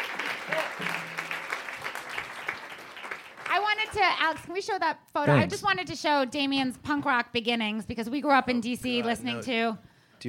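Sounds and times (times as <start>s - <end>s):
audience applause: 0.0s - 4.4s
speech: 3.9s - 10.2s.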